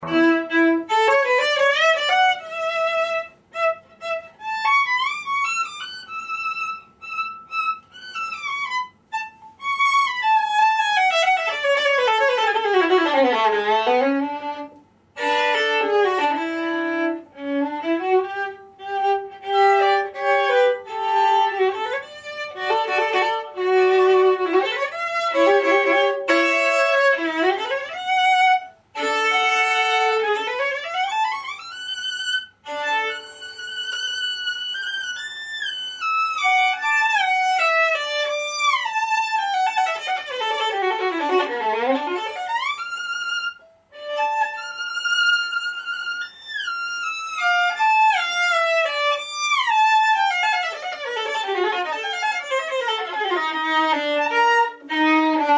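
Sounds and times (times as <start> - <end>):
solo instrumental cadenza: 0.0 - 55.5.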